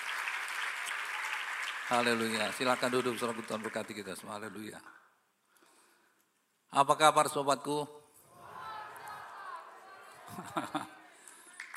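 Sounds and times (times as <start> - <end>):
audience applause: 0.0 - 4.2, 10.3 - 11.7
speech: 1.9 - 5.0, 6.7 - 8.0, 10.3 - 11.0
laughter: 8.4 - 11.2.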